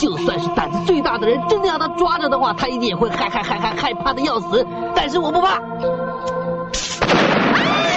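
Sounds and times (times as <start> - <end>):
speech: 0.0 - 7.3
laughter: 2.9 - 4.3
firecracker explosion: 6.8 - 7.8.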